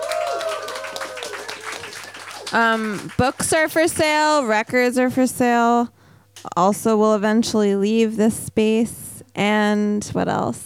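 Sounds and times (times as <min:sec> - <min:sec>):
audience applause: 0:00.0 - 0:03.7
speech: 0:02.5 - 0:10.6.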